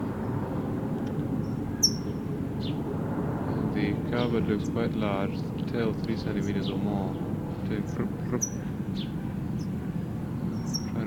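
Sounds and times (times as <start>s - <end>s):
steady low rumble: 0.0s - 11.0s
speech: 4.2s - 9.1s
towhee chip calls: 8.2s - 9.9s.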